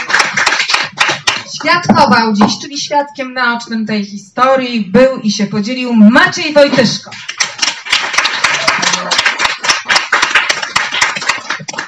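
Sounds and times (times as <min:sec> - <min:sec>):
audience applause: 0:00.0 - 0:01.5, 0:07.2 - 0:11.8
speech: 0:01.6 - 0:07.4.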